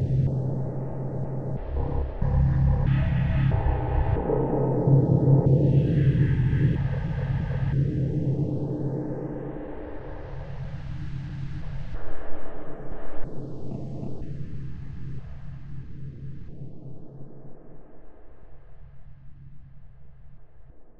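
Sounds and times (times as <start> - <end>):
suspense music: 0.0 - 9.5.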